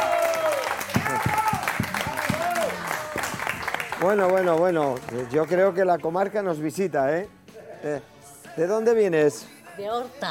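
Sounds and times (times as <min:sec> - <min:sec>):
audience applause: 0:00.0 - 0:05.6
people calling out and cheering: 0:00.0 - 0:05.8
speech: 0:04.0 - 0:10.2.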